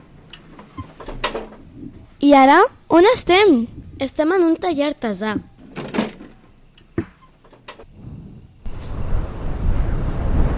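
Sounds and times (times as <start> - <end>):
speech: 2.2 - 5.5
gust of wind: 3.6 - 4.1, 7.8 - 10.5.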